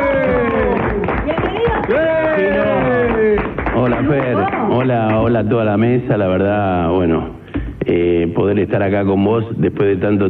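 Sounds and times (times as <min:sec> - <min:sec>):
studio cheering: 0:00.0 - 0:03.5
studio applause: 0:00.0 - 0:05.5
speech: 0:04.1 - 0:10.2.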